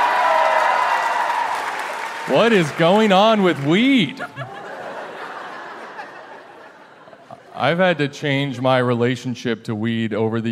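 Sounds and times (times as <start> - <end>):
faint cheering: 0.0 - 4.5
audience applause: 0.0 - 6.7
speech: 2.3 - 4.3, 7.6 - 10.5
laughter: 2.3 - 8.1.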